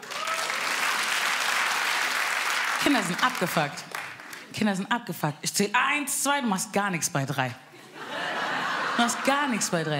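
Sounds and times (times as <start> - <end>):
audience applause: 0.0 - 4.4
speech: 2.8 - 3.9, 4.5 - 7.7, 9.0 - 9.9
laughter: 7.8 - 9.9.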